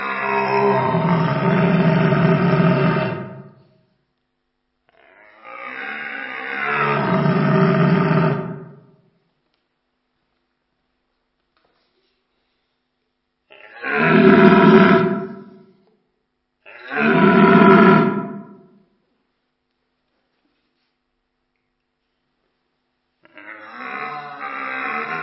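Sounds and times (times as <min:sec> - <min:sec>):
two red deer stags of equal strength roaring during a parallel march: 0:00.0 - 0:03.7, 0:05.2 - 0:09.0, 0:13.5 - 0:15.6, 0:16.7 - 0:18.7, 0:23.3 - 0:25.2.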